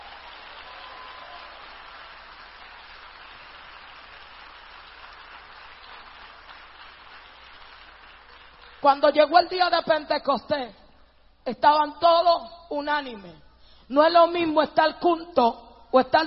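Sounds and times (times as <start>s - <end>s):
audience applause: 0.0s - 8.8s
speech: 8.8s - 10.8s, 11.4s - 16.2s.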